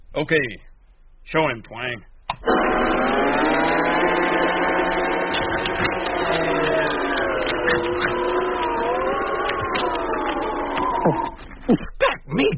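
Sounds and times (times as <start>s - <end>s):
speech: 0.2s - 4.2s
large kitchen blender running: 2.4s - 11.6s.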